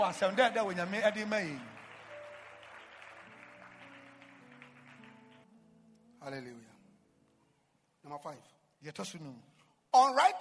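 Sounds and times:
speech: 0.0s - 1.8s, 6.2s - 6.7s, 8.0s - 10.3s
audience clapping: 0.0s - 5.5s.

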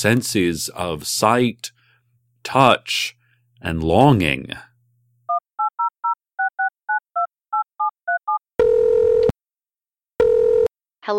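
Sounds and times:
speech: 0.0s - 1.8s, 2.4s - 4.7s
telephone keypad dialing tones: 5.3s - 9.3s.

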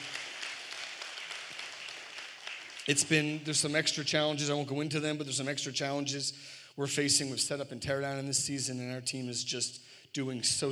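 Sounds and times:
audience round of applause: 0.0s - 3.4s
speech: 2.9s - 10.7s.

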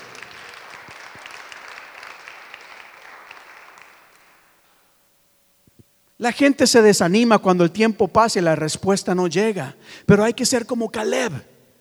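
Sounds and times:
audience applause: 0.0s - 4.8s
speech: 6.2s - 11.5s.

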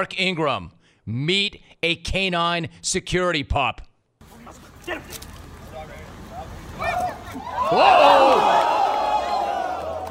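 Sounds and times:
speech: 0.0s - 3.9s, 6.8s - 8.7s
crowd oohing and aahing: 6.8s - 10.1s.

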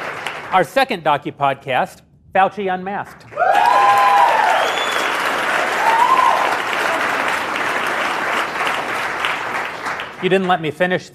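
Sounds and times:
audience clapping: 0.0s - 0.8s, 3.0s - 11.0s
speech: 0.5s - 3.6s, 10.2s - 11.1s
whistles and cheers: 3.3s - 7.1s.

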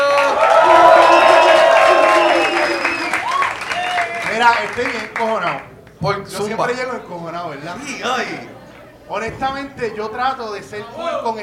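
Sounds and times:
audience applause: 0.0s - 5.7s
speech: 4.5s - 11.4s.

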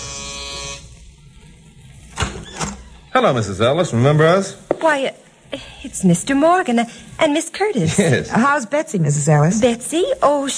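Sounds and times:
apartment doorbell buzzer: 0.0s - 0.9s
speech: 3.2s - 10.5s.

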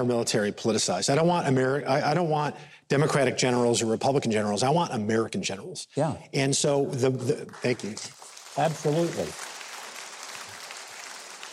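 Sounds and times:
speech: 0.0s - 9.5s
audience applause: 7.4s - 11.5s.

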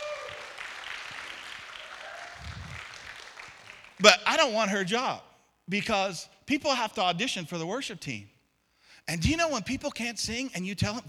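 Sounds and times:
audience applause: 0.0s - 4.2s
speech: 4.0s - 8.3s, 9.0s - 11.0s.

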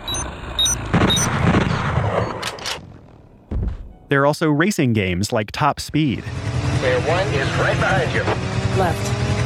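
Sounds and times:
brief electronic tones in an audio-only shooter game: 0.0s - 2.5s
speech: 4.1s - 9.3s.

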